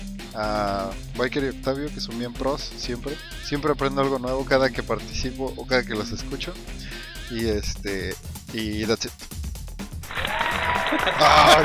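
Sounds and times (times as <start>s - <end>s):
speech: 0.4s - 9.4s, 11.0s - 11.6s
applause sound effect: 10.0s - 11.6s
voices and laughter: 10.2s - 11.6s.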